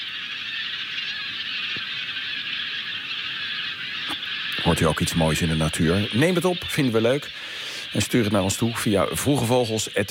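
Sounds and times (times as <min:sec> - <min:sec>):
flock of geese honking and calling: 0:00.0 - 0:10.0
speech: 0:04.7 - 0:10.0.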